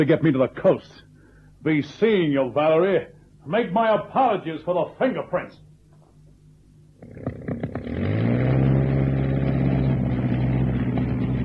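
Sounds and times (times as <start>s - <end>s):
speech: 0.0s - 5.6s
Sopwith propeller plane engine: 7.0s - 11.4s.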